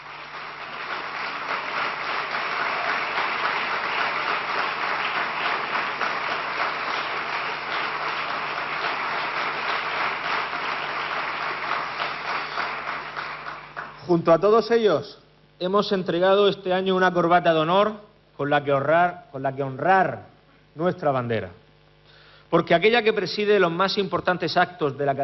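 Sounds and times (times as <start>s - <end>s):
audience applause: 0.0s - 14.1s
speech: 14.1s - 21.6s, 22.5s - 25.2s.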